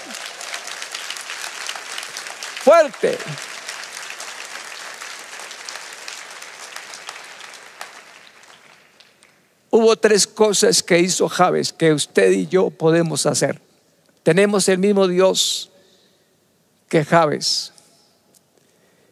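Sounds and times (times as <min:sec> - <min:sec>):
applause: 0:00.0 - 0:09.6
speech: 0:02.6 - 0:03.5, 0:09.7 - 0:13.7, 0:14.3 - 0:15.7, 0:16.9 - 0:17.8.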